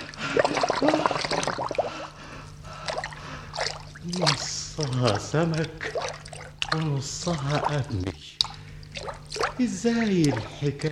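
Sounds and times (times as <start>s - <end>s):
water splashing and gurgling as someone dives under water in a radio drama: 0.0s - 2.1s, 2.8s - 10.8s
faint water drips: 2.7s - 10.8s
speech: 4.8s - 5.9s, 6.7s - 8.2s, 9.6s - 10.8s.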